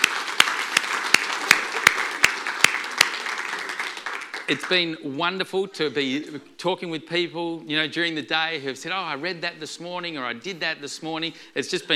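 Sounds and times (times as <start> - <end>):
audience applause: 0.0 - 5.0
speech: 4.5 - 11.9.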